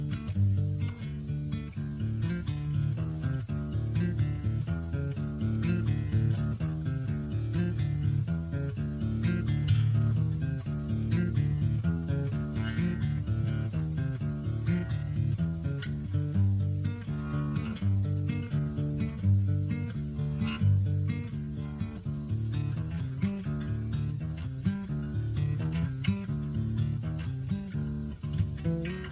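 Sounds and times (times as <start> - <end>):
electric guitar metal ballad: 0.0 - 29.1.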